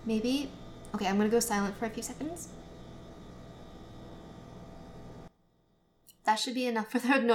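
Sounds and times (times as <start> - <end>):
speech: 0.0 - 2.7, 6.3 - 7.3
refrigerator humming: 0.0 - 5.3.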